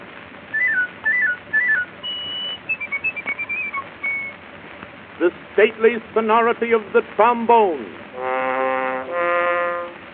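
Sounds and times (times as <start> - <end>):
piccolo warbling: 0.5 - 4.4, 8.2 - 10.0
speech: 5.2 - 8.3.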